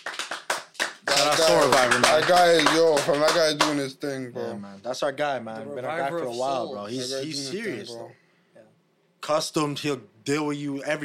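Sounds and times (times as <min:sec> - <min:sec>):
round of applause: 0:00.0 - 0:03.8
speech: 0:01.3 - 0:08.2, 0:09.3 - 0:11.0.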